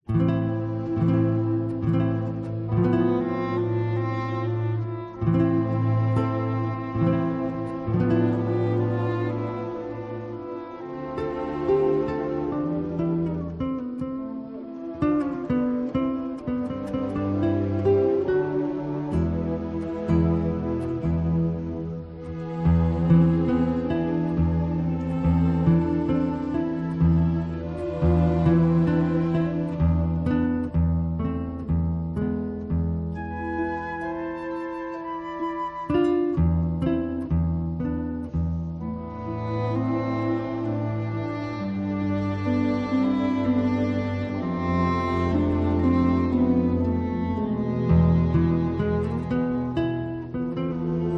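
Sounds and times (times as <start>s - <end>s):
adagietto for guitar and orchestra: 0.0s - 51.1s.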